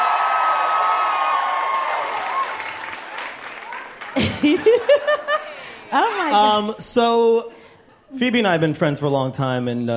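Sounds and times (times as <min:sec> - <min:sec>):
audience applause: 0:00.0 - 0:05.8
laughter: 0:04.1 - 0:06.8
speech: 0:04.4 - 0:05.2, 0:05.9 - 0:09.9.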